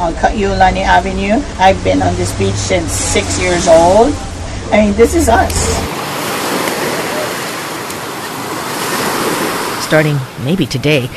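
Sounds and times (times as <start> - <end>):
ocean surf washing onto a beach: 0.0 - 11.1
speech: 0.1 - 6.0, 9.9 - 11.1.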